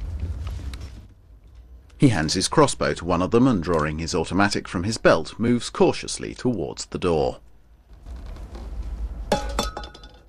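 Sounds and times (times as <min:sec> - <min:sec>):
low rumble: 0:00.0 - 0:06.3, 0:07.3 - 0:10.2
speech: 0:02.0 - 0:07.5
metal can kicked clattering across a hard floor: 0:09.3 - 0:10.2.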